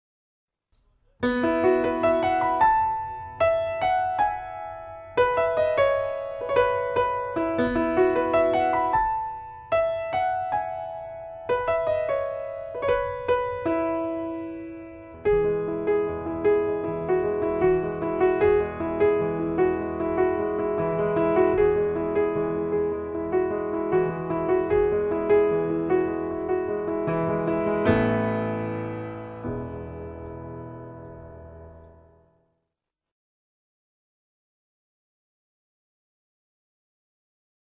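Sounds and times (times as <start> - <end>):
piano: 0.8 - 32.6.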